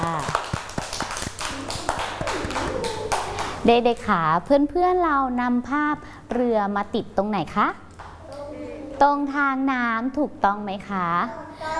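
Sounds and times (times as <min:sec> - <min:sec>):
children clapping hands: 0:00.0 - 0:03.7
speech: 0:03.6 - 0:07.8, 0:09.0 - 0:11.4.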